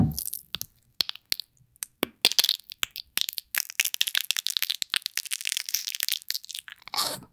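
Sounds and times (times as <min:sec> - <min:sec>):
disgusting bone breaking: 0:00.2 - 0:07.0.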